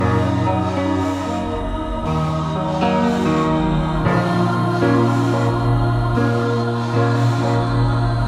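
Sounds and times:
piano loop: 0:00.0 - 0:08.2
vocals: 0:00.0 - 0:08.2.

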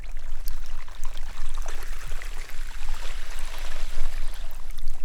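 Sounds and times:
snow melting: 0:00.1 - 0:05.0.

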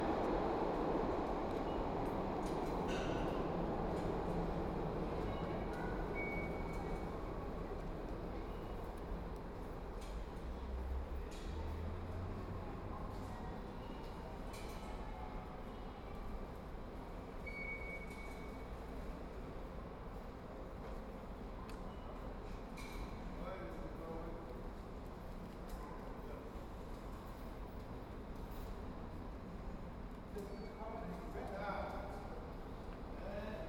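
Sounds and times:
subway station ambience: 0:00.0 - 0:33.6.

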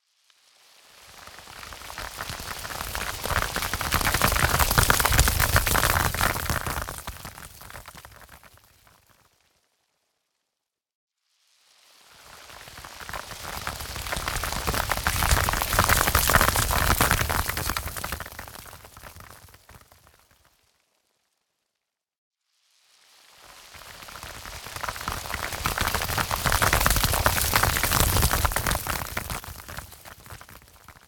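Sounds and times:
short rockfall down the slope with reflections: 0:01.2 - 0:09.3, 0:12.2 - 0:20.6, 0:23.7 - 0:31.0.

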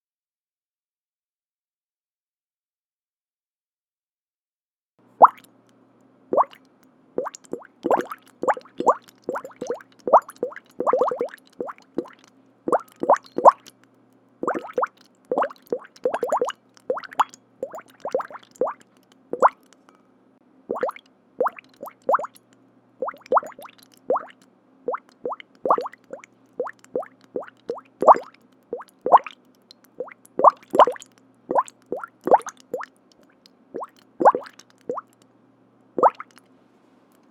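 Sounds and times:
bubbles: 0:05.2 - 0:05.5, 0:06.3 - 0:06.6, 0:07.2 - 0:13.8, 0:14.4 - 0:19.6, 0:20.7 - 0:35.2, 0:36.0 - 0:36.4.

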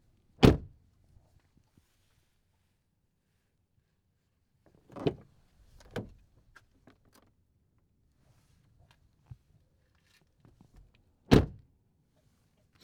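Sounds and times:
car door opening and closing: 0:00.4 - 0:00.7, 0:11.3 - 0:11.6.

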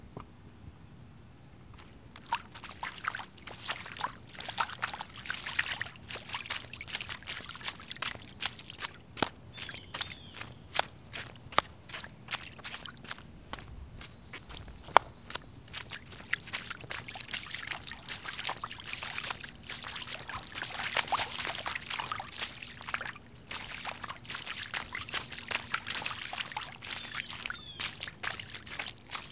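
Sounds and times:
walking and running through water: 0:01.8 - 0:29.3.

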